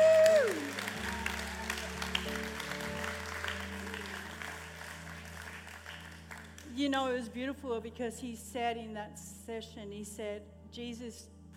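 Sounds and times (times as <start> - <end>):
cheering whoop: 0.0 - 4.6
audience clapping: 0.0 - 6.8
sustained musical tones: 0.7 - 6.6
speech: 6.8 - 11.3.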